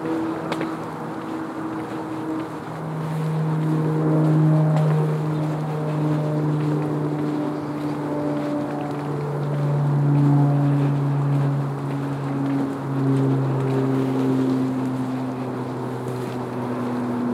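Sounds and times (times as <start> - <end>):
vehicle engine droning: 0.0 - 17.3.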